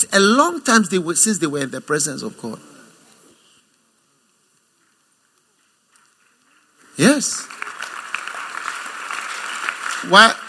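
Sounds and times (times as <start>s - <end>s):
speech: 0.0s - 2.8s, 7.0s - 7.7s, 10.0s - 10.4s
audience clapping: 6.9s - 10.4s.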